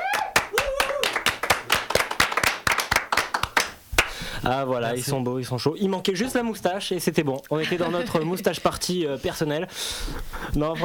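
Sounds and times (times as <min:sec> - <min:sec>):
audience applause: 0:00.0 - 0:03.8
speech: 0:04.4 - 0:10.8.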